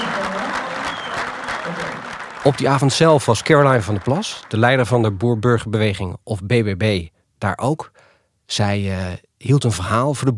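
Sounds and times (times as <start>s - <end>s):
audience clapping along: 0.0s - 5.7s
speech: 2.4s - 10.3s.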